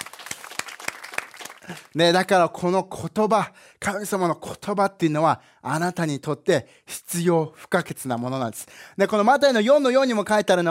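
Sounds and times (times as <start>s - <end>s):
audience applause: 0.0s - 2.0s
speech: 1.7s - 10.6s.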